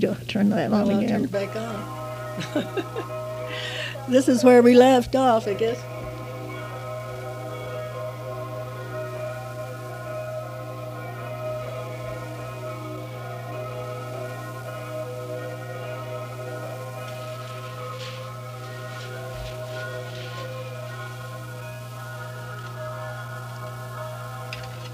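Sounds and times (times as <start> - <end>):
speech: 0.0 - 5.9
low hum: 0.0 - 24.9
many bells ringing in Switzerland: 0.7 - 24.9
laughter: 0.9 - 4.9.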